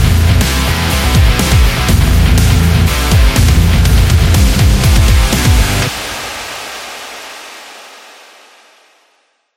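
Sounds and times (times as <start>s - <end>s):
gym rock music: 0.0s - 7.6s.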